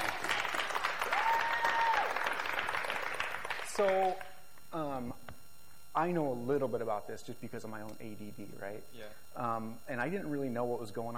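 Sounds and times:
audience applause: 0.0 - 4.3
speech: 3.8 - 5.3, 6.0 - 11.1.

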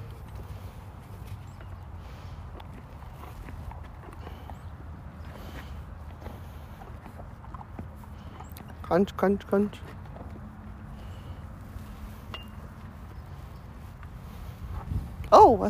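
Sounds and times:
horse hooves clip-clopping at a walking pace: 0.0 - 15.3
speech: 8.9 - 10.0.

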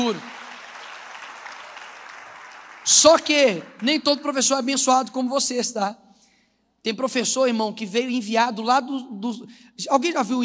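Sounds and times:
speech: 0.0 - 0.4, 2.9 - 6.0, 6.8 - 10.4
audience applause: 0.0 - 4.0.

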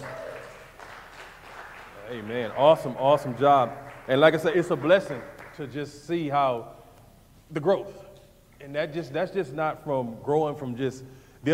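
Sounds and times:
audience hand clapping: 0.0 - 5.8
speech: 2.1 - 6.8, 7.5 - 8.0, 8.6 - 11.5.

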